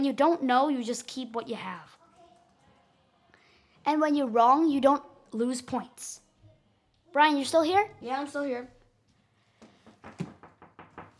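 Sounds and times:
speech: 0:00.0 - 0:02.0, 0:03.8 - 0:06.2, 0:07.1 - 0:08.8
knuckles knocking on a door: 0:09.8 - 0:11.1.

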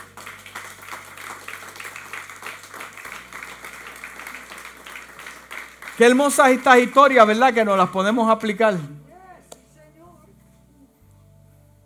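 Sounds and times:
audience applause: 0:00.0 - 0:07.9
speech: 0:06.0 - 0:09.0.

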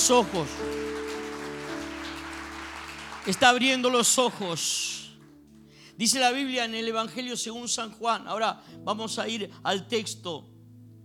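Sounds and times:
speech: 0:00.0 - 0:00.9, 0:03.2 - 0:05.0, 0:06.0 - 0:10.5
audience applause: 0:00.0 - 0:04.6.

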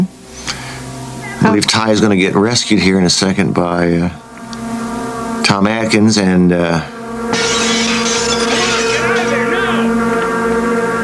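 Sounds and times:
speech: 0:01.5 - 0:04.2, 0:05.5 - 0:06.9
candy glass window smashing in a scene from the 1980 film The Fog: 0:07.3 - 0:09.9
swelling tones: 0:07.3 - 0:11.0.

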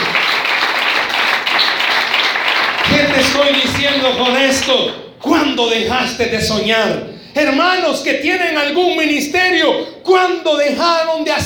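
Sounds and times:
audience applause: 0:00.0 - 0:04.7
speech: 0:03.4 - 0:11.4.

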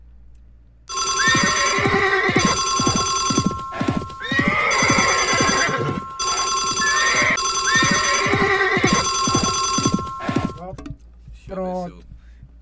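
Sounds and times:
horse whinnies in a radio jingle: 0:00.9 - 0:10.6
ringing telephone bell in a radio jingle: 0:00.9 - 0:10.6
galloping clip-clop hooves in a radio jingle: 0:00.9 - 0:12.5.

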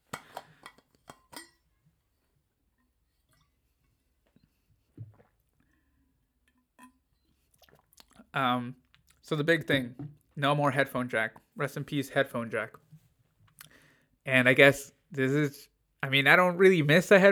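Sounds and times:
person drinking water from a glass: 0:04.8 - 0:06.0, 0:07.3 - 0:08.3
speech: 0:08.4 - 0:12.8, 0:14.3 - 0:17.2.

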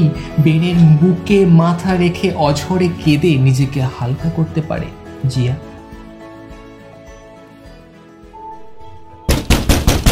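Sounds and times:
speech: 0:00.0 - 0:05.7
heavy pounding on a solid wooden door: 0:09.3 - 0:10.1.

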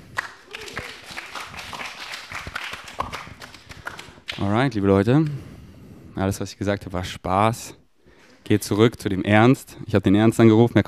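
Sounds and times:
audience applause: 0:00.1 - 0:04.4
speech: 0:04.4 - 0:05.5, 0:06.2 - 0:07.8, 0:08.4 - 0:10.8.

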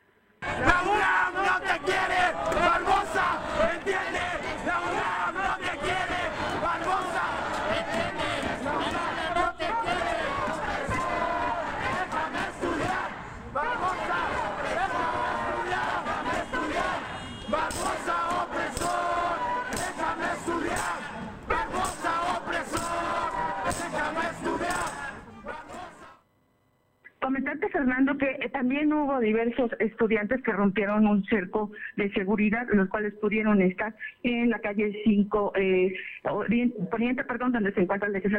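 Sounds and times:
people yelling: 0:00.4 - 0:26.1
student protest crowd chanting: 0:00.4 - 0:26.2
speech: 0:28.2 - 0:38.3.

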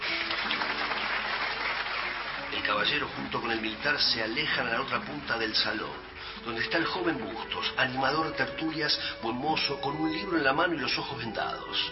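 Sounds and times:
applause from a group of people: 0:00.0 - 0:07.5
speech: 0:02.7 - 0:11.9.

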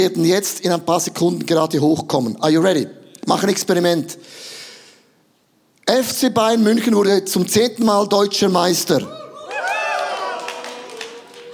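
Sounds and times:
speech: 0:00.0 - 0:04.6, 0:05.9 - 0:09.2
crowd cheering: 0:09.1 - 0:11.5.

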